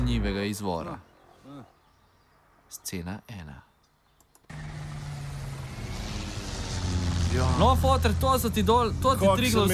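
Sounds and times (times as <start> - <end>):
speech: 0.1 - 1.8, 2.7 - 3.7, 7.3 - 9.7
small airplane engine in flight: 4.5 - 9.7.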